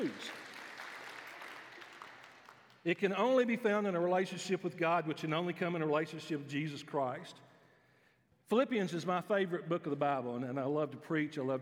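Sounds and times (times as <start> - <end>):
speech: 0.0 - 0.4, 2.8 - 7.5, 8.5 - 11.6
audience applause: 0.0 - 2.8.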